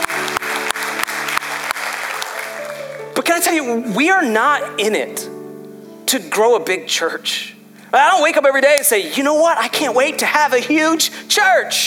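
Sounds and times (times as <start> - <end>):
audience clapping: 0.0 - 3.3
speech: 3.3 - 5.4, 6.1 - 11.8.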